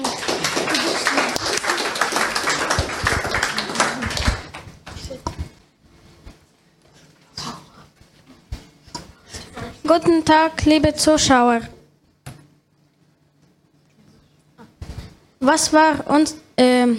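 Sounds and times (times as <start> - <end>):
audience applause: 0.0 - 4.7
speech: 9.9 - 11.8, 15.5 - 16.9.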